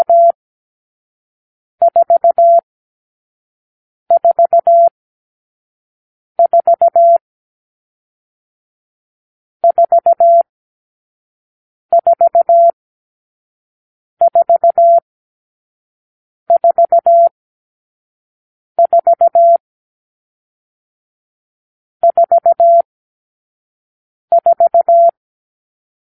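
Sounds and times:
morse code beeps: 0.0s - 0.4s, 1.9s - 2.6s, 4.1s - 4.9s, 6.4s - 7.2s, 9.6s - 10.4s, 11.9s - 12.8s, 14.2s - 15.0s, 16.5s - 17.3s, 18.8s - 19.6s, 22.0s - 22.9s, 24.3s - 25.2s.

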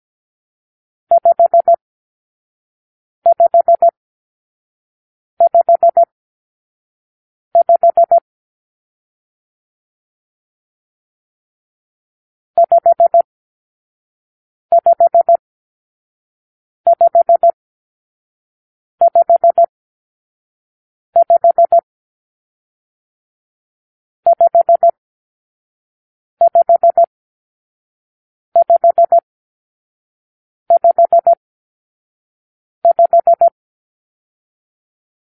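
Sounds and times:
morse code for numeral five: 1.1s - 1.8s, 3.3s - 3.9s, 5.4s - 6.1s, 7.6s - 8.2s, 12.6s - 13.2s, 14.7s - 15.4s, 16.9s - 17.6s, 19.0s - 19.7s, 21.2s - 21.8s, 24.3s - 25.0s, 26.4s - 27.1s, 28.6s - 29.2s, 30.7s - 31.4s, 32.8s - 33.6s.

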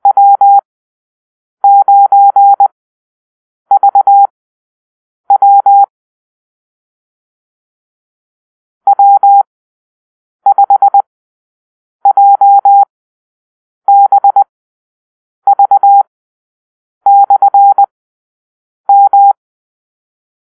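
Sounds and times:
morse code call-sign beeps: 0.0s - 0.6s, 1.6s - 2.7s, 3.7s - 4.3s, 5.3s - 5.9s, 8.9s - 9.5s, 10.5s - 11.1s, 12.1s - 12.9s, 13.9s - 14.4s, 15.5s - 16.1s, 17.1s - 17.9s, 18.9s - 19.4s.

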